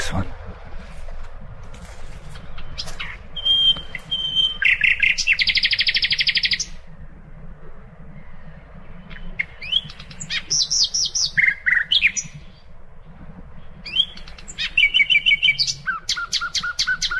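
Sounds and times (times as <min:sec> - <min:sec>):
common nightingale song: 0:02.0 - 0:17.1.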